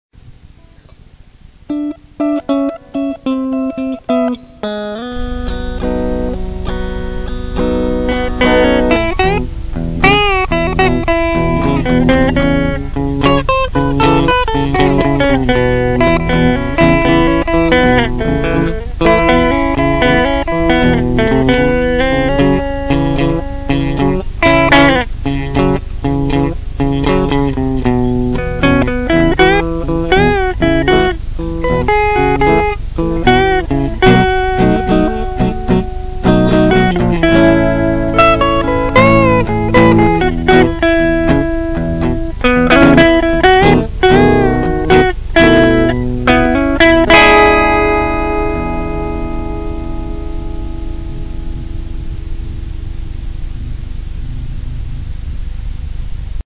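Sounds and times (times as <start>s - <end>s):
slow blues: 0.6s - 55.4s.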